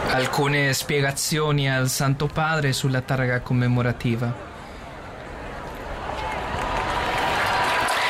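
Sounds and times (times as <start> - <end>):
speech: 0.1 - 4.5
crowd applause at plaque unveiling: 5.7 - 8.0.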